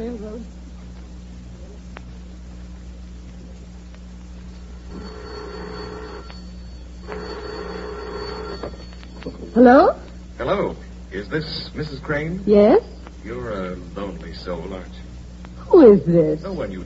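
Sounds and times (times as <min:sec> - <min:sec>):
steady low hum: 0:00.0 - 0:16.8
old telephone bell ringing: 0:04.9 - 0:10.0
speech: 0:09.6 - 0:15.0, 0:15.7 - 0:16.8.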